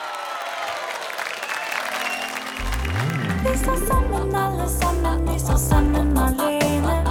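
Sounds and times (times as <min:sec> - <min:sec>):
applause: 0:00.0 - 0:03.7
speech: 0:03.6 - 0:07.0.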